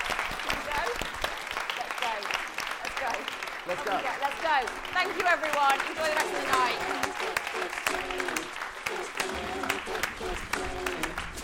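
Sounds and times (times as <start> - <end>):
audience clapping: 0.0 - 11.4
speech: 3.2 - 11.4
scattered voices: 4.9 - 11.4.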